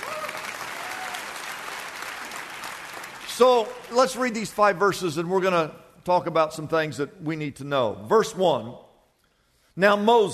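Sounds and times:
audience applause: 0.0 - 4.4
speech: 3.4 - 8.8, 9.8 - 10.3.

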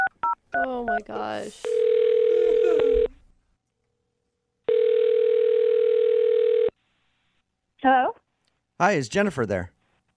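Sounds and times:
speech: 0.7 - 1.8, 8.8 - 9.8
telephone ringback tone: 1.7 - 3.1, 4.7 - 6.7.

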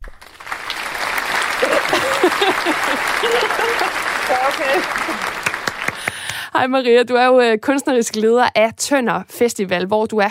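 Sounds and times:
studio crowd applause: 0.0 - 6.4
laughter: 0.6 - 6.2
speech: 2.7 - 5.5, 6.6 - 10.2.

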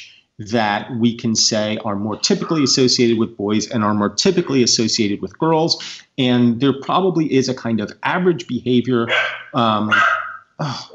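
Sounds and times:
speech: 0.0 - 10.9
dog barking: 9.1 - 10.9.

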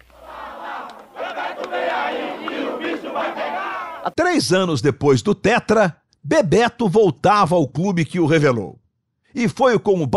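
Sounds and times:
football fans cheering: 0.0 - 4.2
speech: 3.2 - 10.1.

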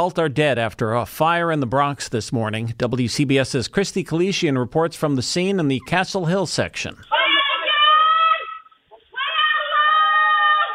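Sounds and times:
speech: 0.0 - 7.2
screams caught by Ring doorbell camera: 7.1 - 10.7.

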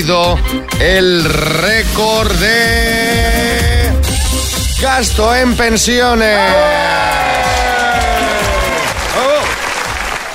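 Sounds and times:
speech: 0.0 - 3.7, 4.8 - 7.6
applause: 6.9 - 10.3.

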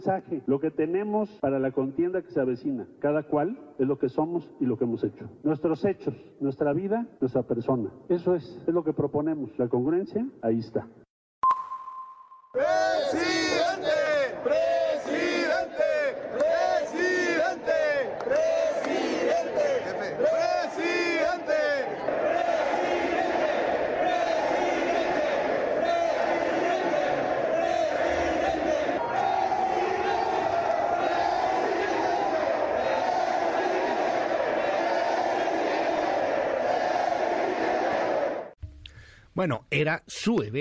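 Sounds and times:
speech: 0.0 - 11.0, 12.5 - 14.6, 39.4 - 40.5
crowd of supporters chanting: 12.6 - 38.6.

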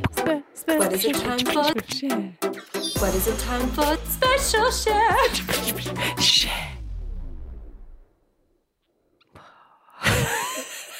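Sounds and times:
speech: 0.3 - 6.8
odd unusual breath: 5.8 - 6.9, 9.3 - 10.0.

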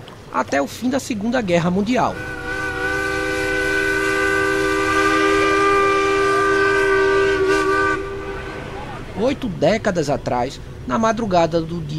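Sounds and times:
speech: 0.3 - 2.4, 9.2 - 11.9
steamship whistle blast on departure: 2.1 - 9.1.

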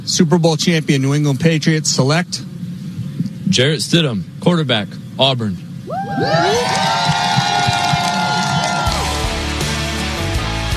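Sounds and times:
speech: 0.0 - 2.5, 3.5 - 7.2
crowd cheering: 5.9 - 10.6.

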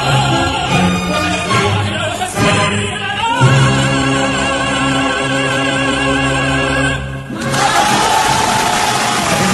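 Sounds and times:
orchestra playing opera finale: 0.0 - 9.5
sustained operatic singing: 0.0 - 9.5
opera audience cheering wildly at finale: 7.4 - 9.5.

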